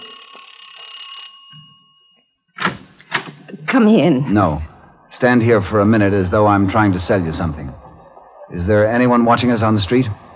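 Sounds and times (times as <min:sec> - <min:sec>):
doorbell ringing: 0:00.0 - 0:02.5
speech: 0:03.7 - 0:07.8, 0:08.5 - 0:10.2.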